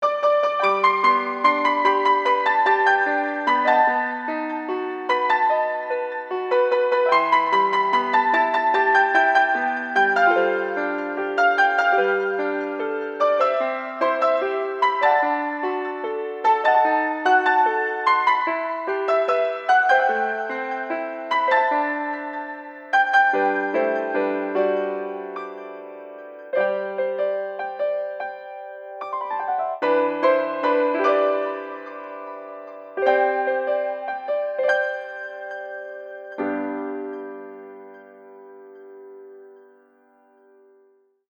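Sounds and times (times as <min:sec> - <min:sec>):
piano: 0:00.0 - 0:41.3.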